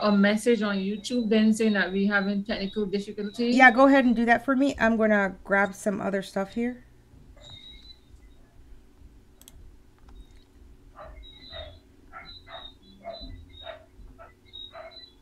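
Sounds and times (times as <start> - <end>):
speech: 0.0 - 7.6
constant low hum: 0.0 - 15.1
dog barking: 11.0 - 15.1.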